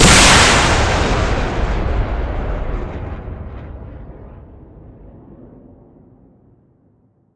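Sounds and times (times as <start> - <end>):
Grad rocket launcher firing: 0.0 - 5.2.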